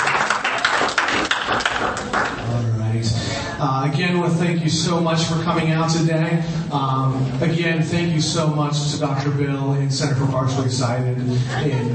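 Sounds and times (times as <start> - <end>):
crowd clapping: 0.0 - 2.6
speech: 1.5 - 11.9.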